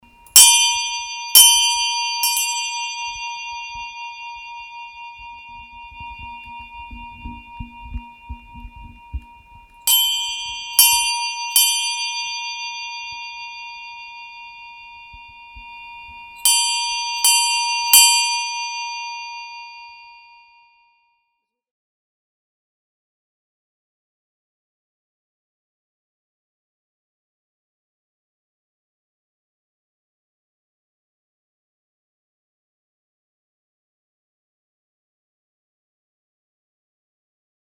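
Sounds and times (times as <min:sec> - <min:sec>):
bell ringing: 0:00.3 - 0:20.5.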